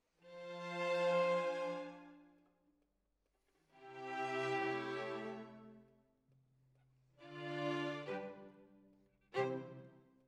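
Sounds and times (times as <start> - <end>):
violins: 0.2 - 2.3, 3.8 - 5.8, 7.2 - 8.7, 9.3 - 10.0.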